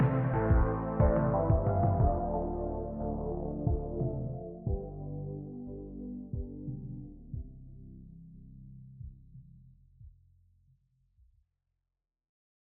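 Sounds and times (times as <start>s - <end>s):
slow dance music: 0.0s - 4.9s.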